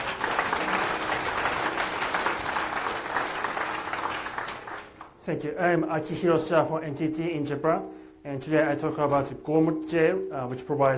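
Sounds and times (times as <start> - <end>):
audience applause: 0.0 - 5.2
speech: 5.3 - 10.9.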